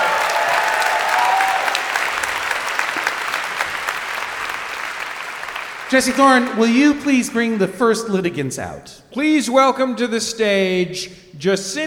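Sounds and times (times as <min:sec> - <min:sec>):
audience applause: 0:00.0 - 0:08.2
speech: 0:05.9 - 0:11.8.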